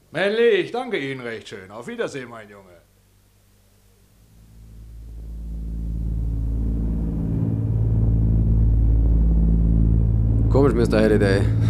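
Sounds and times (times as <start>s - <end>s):
speech: 0.1s - 2.9s, 10.6s - 11.6s
airplane engines droning in flight: 4.3s - 11.6s.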